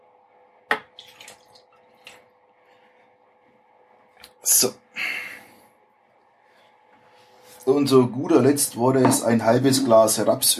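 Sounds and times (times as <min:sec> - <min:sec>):
milk being poured into a Thermomix: 0:00.7 - 0:02.3
speech: 0:04.4 - 0:04.8, 0:07.7 - 0:10.5.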